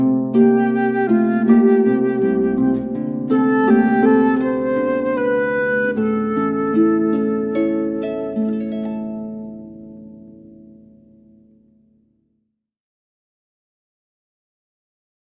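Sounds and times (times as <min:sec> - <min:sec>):
Jewish wedding ceremony music: 0:00.0 - 0:09.4.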